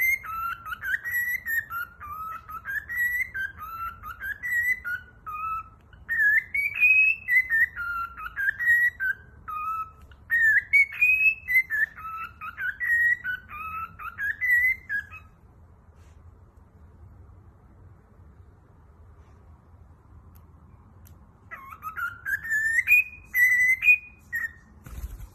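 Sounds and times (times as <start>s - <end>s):
cockatiel whistling a tune: 0.0s - 15.4s, 21.4s - 25.3s.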